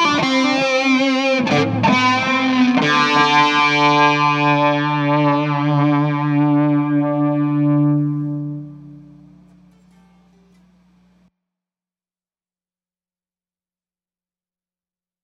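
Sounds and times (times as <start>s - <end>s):
fuzz guitar through tube driver, chorus and delay pedals: 0.0s - 11.3s.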